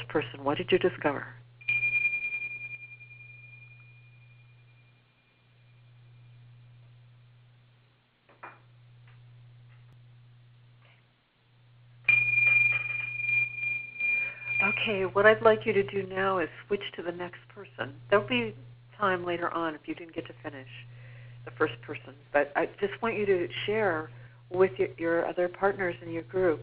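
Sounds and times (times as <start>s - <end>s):
low pulsing hum: 0.0s - 26.6s
speech: 0.1s - 1.4s, 14.8s - 26.6s
chime ringing: 1.6s - 6.3s, 12.1s - 15.2s.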